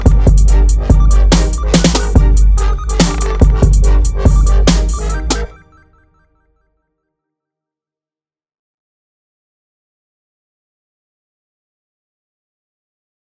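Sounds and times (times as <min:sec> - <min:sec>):
trap music: 0:00.0 - 0:06.8.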